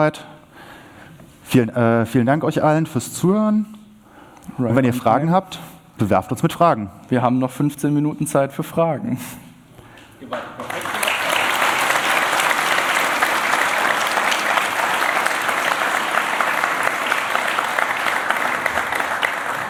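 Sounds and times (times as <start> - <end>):
speech: 0.0 - 0.3, 1.5 - 3.8, 4.5 - 9.4
applause: 10.6 - 19.6.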